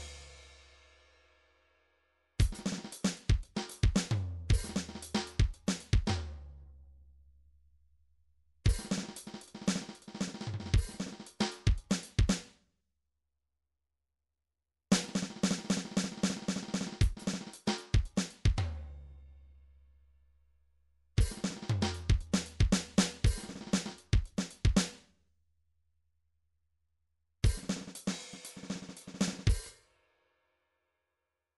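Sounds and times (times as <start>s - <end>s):
drum fill: 2.4s - 6.3s, 8.7s - 12.4s, 14.9s - 18.8s, 21.2s - 24.9s, 27.5s - 29.7s.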